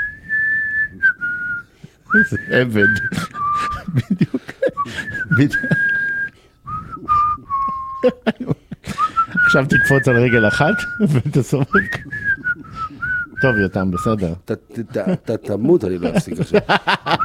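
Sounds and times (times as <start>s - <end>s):
person whistling a tune: 0.0s - 4.0s, 4.8s - 8.2s, 8.9s - 11.1s, 11.7s - 14.2s
speech: 2.1s - 5.9s, 8.0s - 8.5s, 9.5s - 12.1s, 13.4s - 17.2s
laughter: 3.1s - 6.1s, 7.8s - 9.5s, 10.7s - 12.7s, 14.9s - 17.2s.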